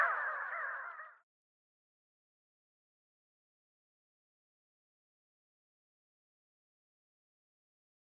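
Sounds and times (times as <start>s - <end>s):
Pin-tailed sandgrouse flock calling with harsh nasal notes: 0.0s - 1.2s.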